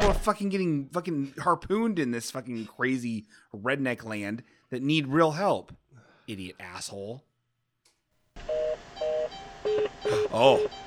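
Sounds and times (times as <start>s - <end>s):
speech: 0.1s - 7.3s, 9.7s - 10.8s
car warning beeps with engine left on: 8.4s - 10.8s.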